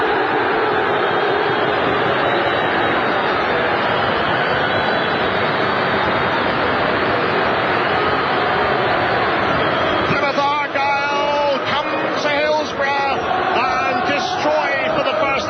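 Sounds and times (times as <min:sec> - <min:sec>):
football crowd cheering: 0:00.0 - 0:15.4
shrill whistles from football crowd: 0:01.9 - 0:06.5, 0:09.4 - 0:10.4.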